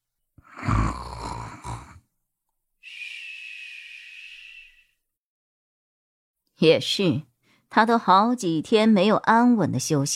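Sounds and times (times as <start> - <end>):
loud snoring: 0.4 - 2.0
speech: 6.6 - 10.1.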